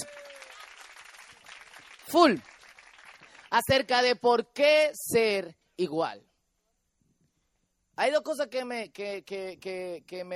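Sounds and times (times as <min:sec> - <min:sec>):
crowd applause: 0:00.0 - 0:03.6
speech: 0:02.1 - 0:02.5, 0:03.5 - 0:06.3, 0:08.0 - 0:10.3.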